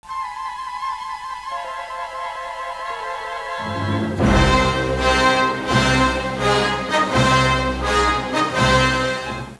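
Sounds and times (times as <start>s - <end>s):
theme music: 0.1s - 9.5s.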